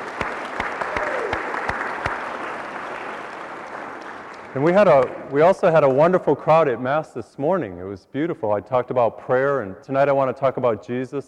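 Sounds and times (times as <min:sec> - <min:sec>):
audience applause: 0:00.0 - 0:05.2
speech: 0:04.5 - 0:11.2.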